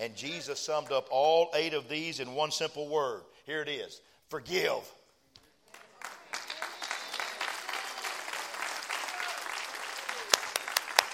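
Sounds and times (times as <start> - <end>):
speech: 0.0 - 5.0
audience clapping: 5.7 - 11.1.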